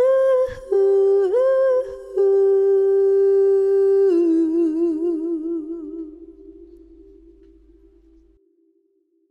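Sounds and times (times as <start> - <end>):
a cappella singing: 0.0 - 7.2.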